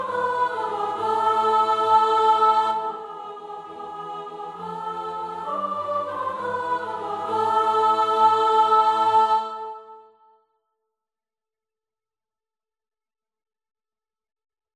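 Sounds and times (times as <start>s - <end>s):
soprano singing a Christmas carol: 0.0s - 10.2s.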